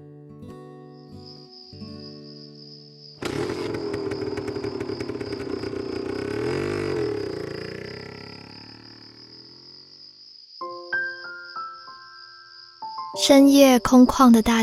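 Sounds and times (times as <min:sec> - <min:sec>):
motorcycle riding on an empty street at night: 0:03.2 - 0:10.4
speech: 0:13.2 - 0:14.6.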